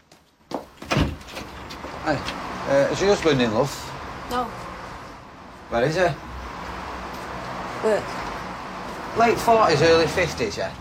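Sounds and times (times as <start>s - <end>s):
front door being opened: 0.6s - 3.4s
speech: 2.0s - 4.6s, 5.7s - 6.3s, 7.8s - 8.2s, 9.2s - 10.8s.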